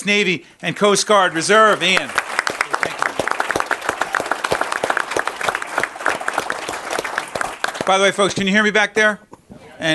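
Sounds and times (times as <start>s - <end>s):
speech: 0.0s - 2.4s, 7.9s - 9.9s
audience applause welcoming a U.S. Navy and Coast Guard Reserve veteran: 1.4s - 8.0s.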